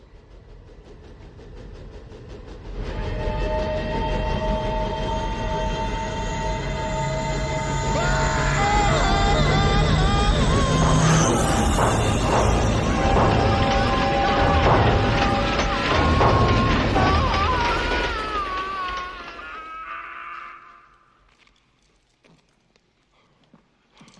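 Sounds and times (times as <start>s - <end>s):
train rumbling through a tunnel overhead: 0.0s - 21.6s
high metallic squealing tones: 2.8s - 20.4s
train wheels clattering: 7.0s - 20.0s.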